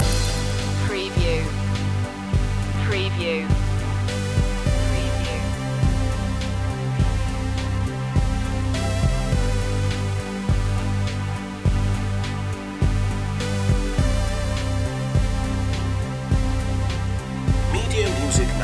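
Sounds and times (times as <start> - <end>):
deep dreaming music loop: 0.0 - 18.6.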